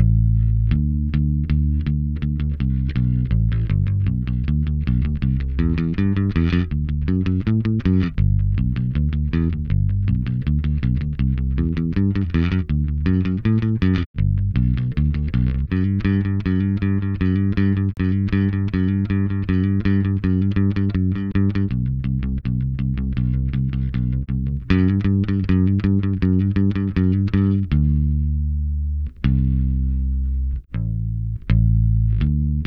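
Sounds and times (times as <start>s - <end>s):
bass: 0.0s - 32.6s.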